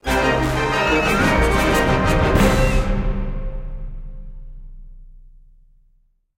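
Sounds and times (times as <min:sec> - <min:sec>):
action music sting: 0:00.1 - 0:05.4.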